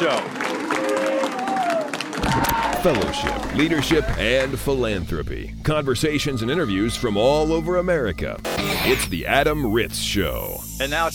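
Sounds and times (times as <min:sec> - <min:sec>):
speech: 0:00.0 - 0:00.5, 0:02.8 - 0:11.1
audience applause at Fresno State: 0:00.0 - 0:04.5.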